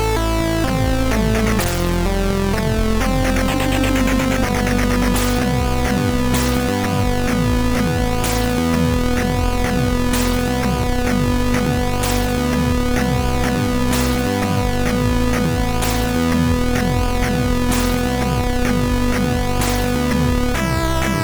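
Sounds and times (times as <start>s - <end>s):
chiptune melody from a SID MOS6581R3 chip: 0.0s - 21.2s.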